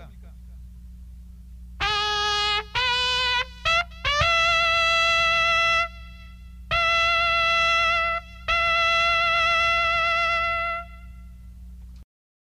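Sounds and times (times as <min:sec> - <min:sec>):
cavalry trumpet calls honouring colonels of the republic: 0:01.8 - 0:11.5.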